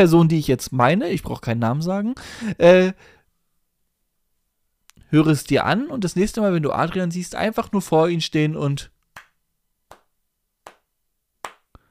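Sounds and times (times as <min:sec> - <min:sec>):
speech: 0:00.0 - 0:03.2, 0:05.1 - 0:08.9
hands clapping: 0:09.1 - 0:11.8.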